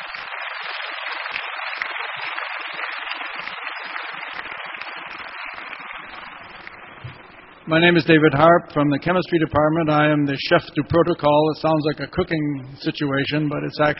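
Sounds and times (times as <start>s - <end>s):
audience applause: 0.0s - 7.4s
speech: 7.7s - 13.9s.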